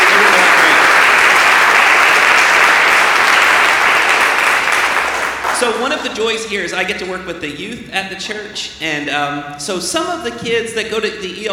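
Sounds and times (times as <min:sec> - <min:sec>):
audience clapping for teachers: 0:00.0 - 0:06.1
speech: 0:05.8 - 0:11.5.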